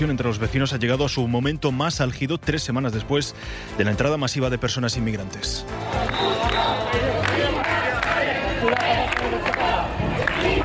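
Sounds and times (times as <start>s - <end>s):
speech: 0.0s - 7.1s
angry crowd shouting slogans: 5.8s - 10.6s.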